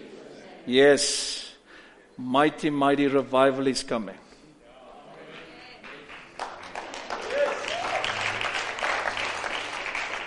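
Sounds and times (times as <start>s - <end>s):
speech: 0.7s - 1.4s, 2.2s - 4.2s
audience clapping: 5.3s - 10.2s.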